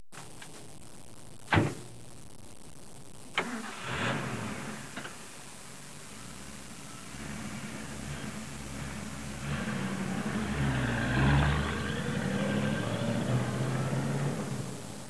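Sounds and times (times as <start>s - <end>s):
traffic: 3.4s - 15.0s
cars passing: 6.4s - 15.0s.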